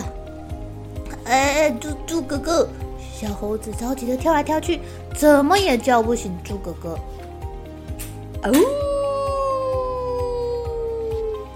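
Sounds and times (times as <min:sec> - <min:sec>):
speech: 0:01.3 - 0:07.1, 0:08.4 - 0:08.8
wolf howling: 0:08.6 - 0:11.5.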